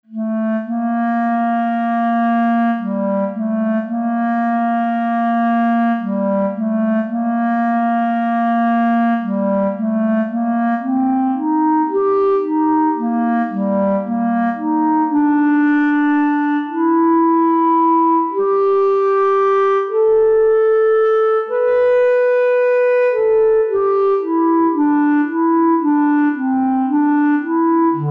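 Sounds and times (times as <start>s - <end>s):
bass: 0.0s - 28.0s.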